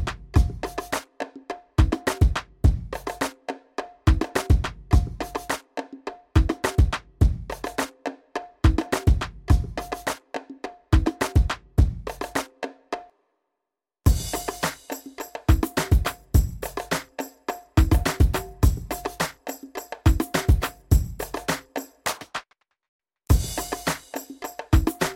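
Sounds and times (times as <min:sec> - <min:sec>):
music beat: 0:00.0 - 0:01.2, 0:01.8 - 0:05.6, 0:06.3 - 0:07.9, 0:08.6 - 0:10.2, 0:14.1 - 0:22.5, 0:23.3 - 0:25.1.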